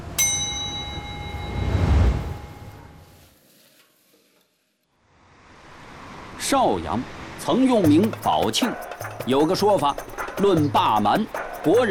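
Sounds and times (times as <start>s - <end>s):
wok metallic ring: 0.2s - 2.8s
speech: 6.5s - 11.8s.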